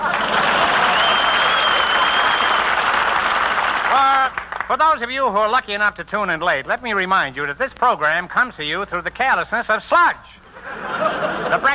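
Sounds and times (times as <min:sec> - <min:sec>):
laughter: 0:00.0 - 0:01.8, 0:10.5 - 0:11.7
studio audience applause: 0:00.0 - 0:04.8
speech: 0:04.7 - 0:11.7.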